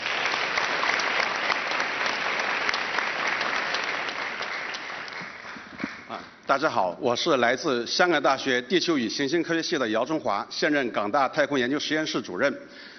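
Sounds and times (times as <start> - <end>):
audience applause: 0.0 - 6.2
speech: 6.5 - 12.9.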